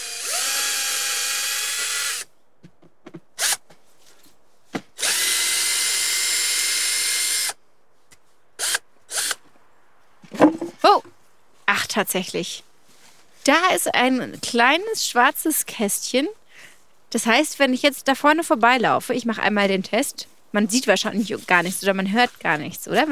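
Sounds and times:
cordless drill-driver unscrewing a post: 0:00.0 - 0:02.3, 0:03.4 - 0:03.6, 0:05.0 - 0:07.6, 0:08.6 - 0:09.4
speech: 0:12.0 - 0:12.7, 0:13.5 - 0:16.4, 0:17.1 - 0:23.1.

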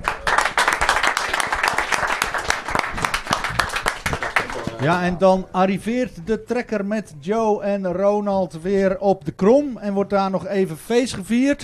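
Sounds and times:
applause: 0:00.0 - 0:05.0
speech: 0:04.8 - 0:11.6.

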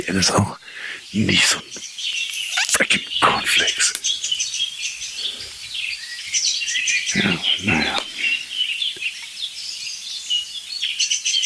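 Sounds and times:
speech: 0:00.0 - 0:04.2
song thrush singing: 0:00.0 - 0:11.4.

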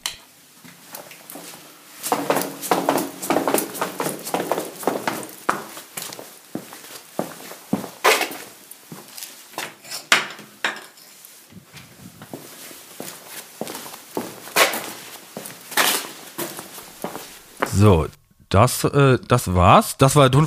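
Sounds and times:
footsteps in sneakers on a sandy cellar floor: 0:00.6 - 0:09.5, 0:11.8 - 0:18.0
speech: 0:17.8 - 0:20.4.

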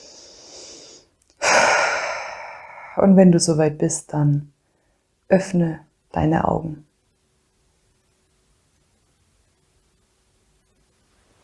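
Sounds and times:
deep breath in and out during a guided meditation: 0:00.0 - 0:03.0
speech: 0:03.0 - 0:04.6, 0:05.3 - 0:06.9.

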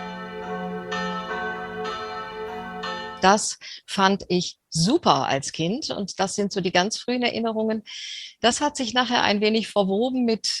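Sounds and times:
church bells ringing loudly: 0:00.0 - 0:03.3
speech: 0:03.2 - 0:10.5.

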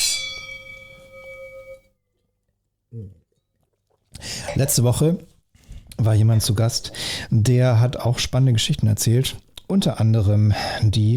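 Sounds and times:
glasses clinking in a toast: 0:00.0 - 0:01.8
speech: 0:02.9 - 0:03.2, 0:04.2 - 0:05.3, 0:06.0 - 0:11.1.

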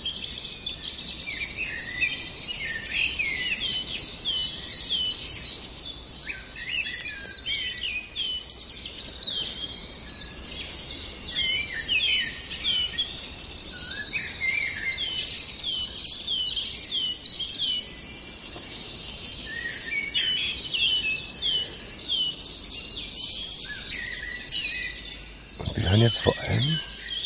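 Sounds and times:
Eurasian blackbird fluting song: 0:00.0 - 0:27.2
chorus of chirping and warbling birds: 0:00.0 - 0:27.2
speech: 0:26.0 - 0:26.9.

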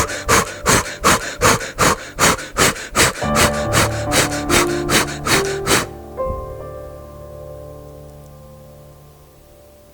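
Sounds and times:
rapid breathing in and out with arms raised: 0:00.0 - 0:06.6.

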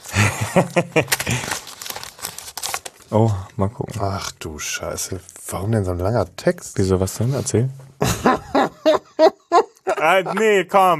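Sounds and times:
laughter: 0:00.1 - 0:01.4, 0:08.0 - 0:10.6
speech: 0:00.4 - 0:01.6, 0:03.1 - 0:08.2, 0:10.0 - 0:10.9
paper envelope being ripped open: 0:01.0 - 0:03.1.

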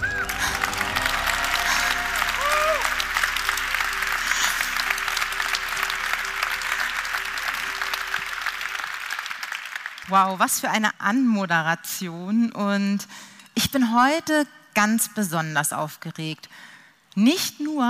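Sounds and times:
audience applause: 0:00.0 - 0:10.1
speech: 0:10.1 - 0:17.8.

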